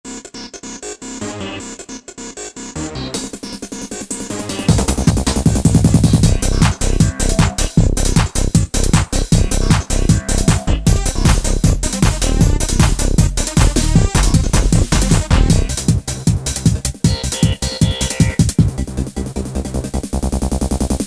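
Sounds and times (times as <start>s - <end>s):
euro techno music: 0.1s - 21.0s.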